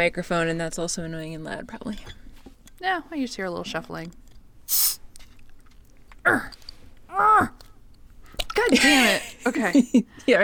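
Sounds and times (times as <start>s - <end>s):
speech: 0.0s - 2.2s, 2.8s - 5.0s, 6.3s - 6.6s, 8.6s - 10.4s
short sharp hiss: 4.7s - 5.0s.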